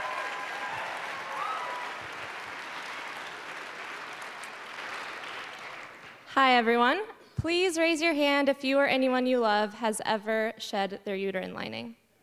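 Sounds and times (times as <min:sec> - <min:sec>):
audience applause: 0:00.0 - 0:06.2
speech: 0:06.3 - 0:12.0.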